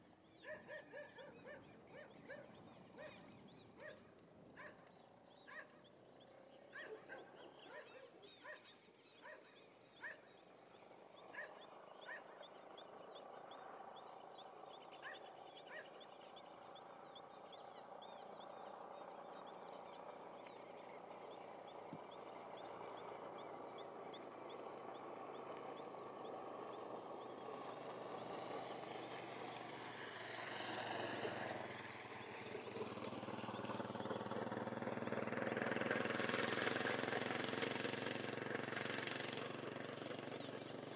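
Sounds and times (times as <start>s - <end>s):
birds in the countryside at dusk: 0.0s - 40.9s
dogs in the countryside: 0.4s - 5.8s, 6.7s - 10.3s, 11.3s - 12.4s
motorcycle passing: 18.6s - 40.9s.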